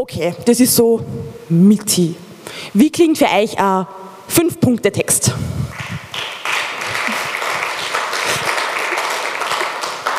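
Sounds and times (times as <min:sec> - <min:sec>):
speech: 0:00.0 - 0:05.8
audience clapping: 0:05.7 - 0:10.1.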